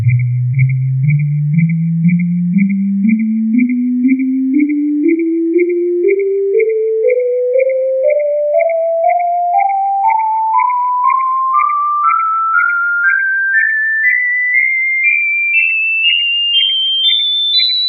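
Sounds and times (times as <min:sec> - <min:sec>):
whistled scale: 0:00.1 - 0:17.8.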